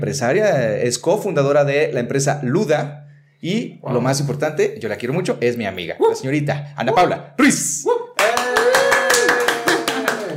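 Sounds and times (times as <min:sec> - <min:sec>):
speech: 0:00.0 - 0:08.0
sustained voice or cheer: 0:07.9 - 0:10.3
loud rhythmic applause: 0:08.2 - 0:10.3.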